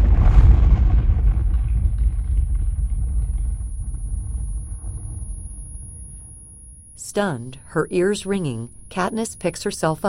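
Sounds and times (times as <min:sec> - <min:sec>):
explosion rolling into a deep rumble: 0:00.0 - 0:06.9
speech: 0:07.2 - 0:10.0.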